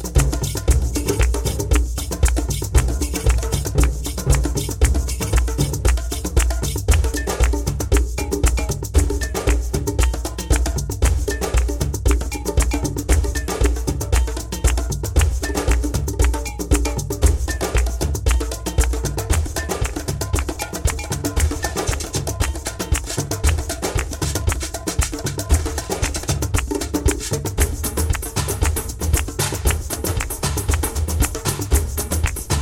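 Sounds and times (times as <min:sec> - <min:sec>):
drums in dialogue: 0:00.0 - 0:32.6.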